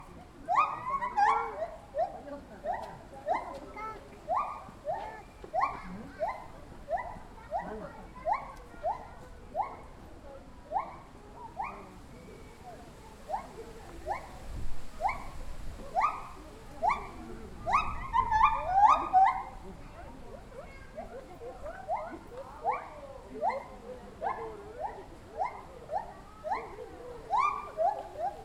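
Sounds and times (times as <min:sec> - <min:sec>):
zoo ambience: 0:00.0 - 0:28.3
distant white-handed gibbon calls: 0:00.5 - 0:09.9, 0:13.2 - 0:19.6, 0:21.7 - 0:28.3.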